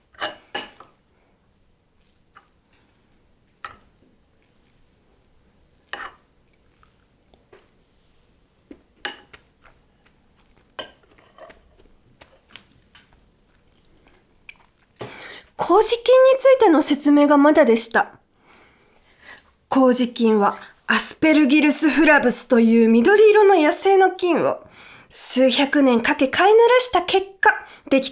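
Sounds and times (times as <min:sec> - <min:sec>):
quiet chewing and biting of oyakodon, chicken and egg rice bowl: 0:00.2 - 0:07.9, 0:08.6 - 0:15.2
speech: 0:15.7 - 0:18.2, 0:19.8 - 0:28.1.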